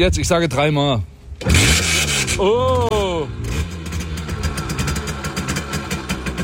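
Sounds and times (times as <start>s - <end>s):
speech: 0.0s - 3.4s
Simson S51 moped engine kick-started: 1.4s - 6.4s.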